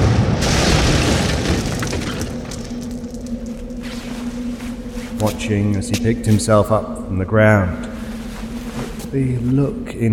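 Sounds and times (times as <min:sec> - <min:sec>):
heavy crash of a body smashing through a building: 0:00.0 - 0:05.6
steady low hum: 0:00.0 - 0:10.1
speech: 0:05.2 - 0:07.9, 0:09.1 - 0:10.1.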